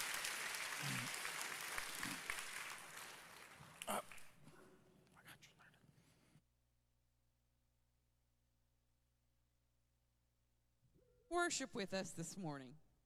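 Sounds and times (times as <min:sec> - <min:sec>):
audience hand clapping: 0:00.0 - 0:04.5
speech: 0:03.9 - 0:04.1, 0:11.5 - 0:12.9.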